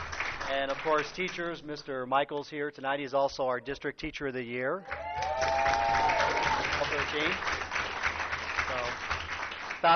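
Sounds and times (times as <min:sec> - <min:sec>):
audience clapping: 0:00.0 - 0:01.6, 0:04.8 - 0:09.9
speech: 0:00.5 - 0:05.1, 0:07.1 - 0:07.6
voices whooping: 0:04.9 - 0:06.8.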